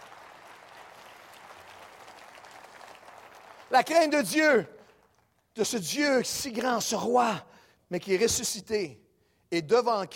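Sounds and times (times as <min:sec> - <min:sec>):
audience applause: 0:00.0 - 0:03.8
speech: 0:03.7 - 0:04.8, 0:05.6 - 0:10.1.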